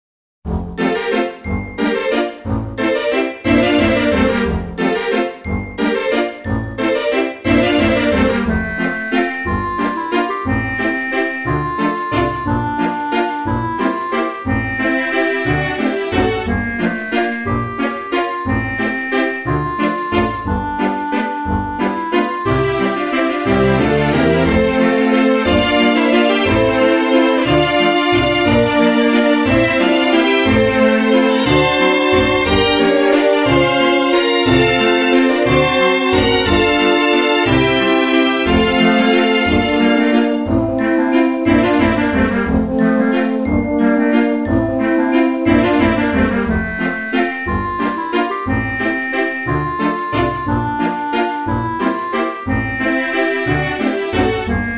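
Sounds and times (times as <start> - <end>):
piano: 0.5 - 54.7.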